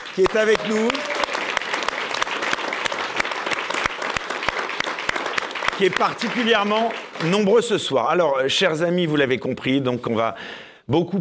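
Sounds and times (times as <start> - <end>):
studio audience applause: 0.0 - 8.0
speech: 0.2 - 1.1, 5.8 - 11.1.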